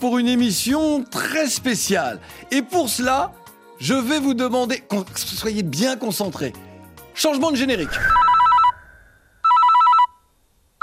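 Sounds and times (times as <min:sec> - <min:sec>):
speech: 0:00.0 - 0:08.3
telephone ringing in electronic bursts: 0:08.2 - 0:08.8, 0:09.4 - 0:10.2.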